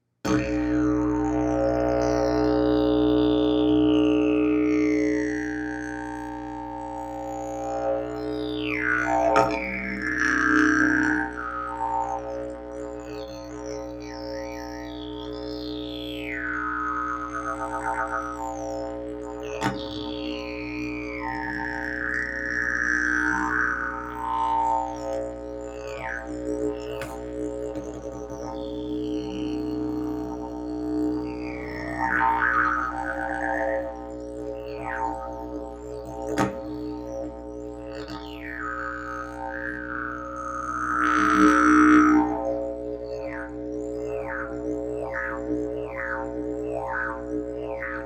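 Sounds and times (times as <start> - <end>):
didgeridoo: 0.0 - 48.0.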